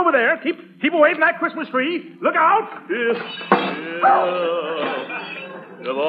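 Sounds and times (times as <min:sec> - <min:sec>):
speech: 0:00.0 - 0:06.0
large clumsy house dog whining indoors near a Christmas tree: 0:04.0 - 0:05.5.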